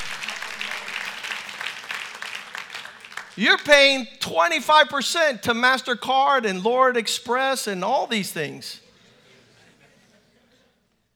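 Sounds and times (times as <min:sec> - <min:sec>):
audience clapping: 0:00.0 - 0:03.7
speech: 0:03.4 - 0:08.8
laughter: 0:08.9 - 0:10.8.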